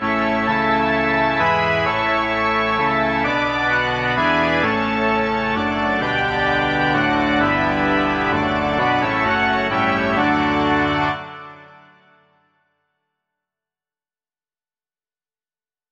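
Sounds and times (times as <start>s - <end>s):
organ: 0.0s - 12.2s.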